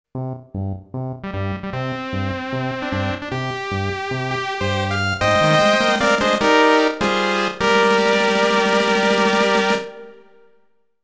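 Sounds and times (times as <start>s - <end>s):
war victory music: 1.5s - 10.3s.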